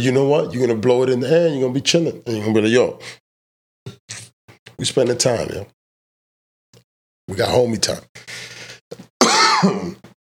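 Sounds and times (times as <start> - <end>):
speech: 0.0 - 3.2, 4.8 - 5.8, 7.3 - 10.1
person coughing: 9.2 - 10.1.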